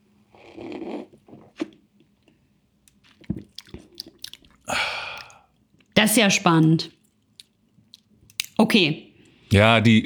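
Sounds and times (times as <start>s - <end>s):
person taking a big sip of cloudy golden sparkling beer: 0.3s - 1.8s, 3.1s - 5.6s
short breathy burst: 4.7s - 5.5s
speech: 6.0s - 7.0s, 8.7s - 10.0s.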